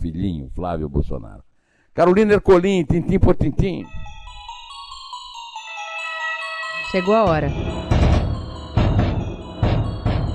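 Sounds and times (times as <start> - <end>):
speech: 0.2 - 4.0, 6.9 - 7.7
dramatic drum jingle with heavy booming drum hits: 7.3 - 10.3.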